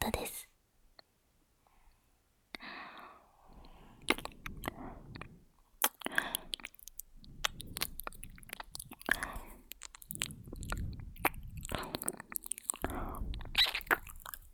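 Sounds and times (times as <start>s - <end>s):
ear licking in the right ear: 3.5s - 14.4s.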